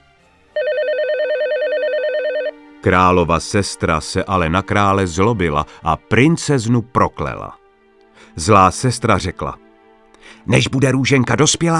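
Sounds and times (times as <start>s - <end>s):
video call ringtone with electronic two-pitch warbling tone: 0.6s - 2.5s
speech: 2.8s - 7.6s, 8.3s - 9.6s, 10.2s - 11.7s.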